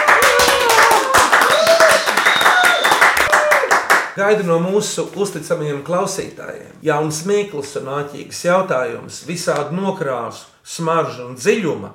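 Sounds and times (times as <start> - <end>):
audience applause: 0.0 - 4.1
speech: 4.2 - 11.9.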